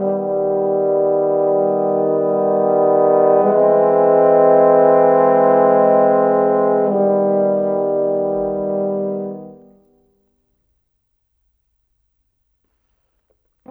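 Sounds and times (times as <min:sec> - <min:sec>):
cinematic horns: 0:00.0 - 0:09.9.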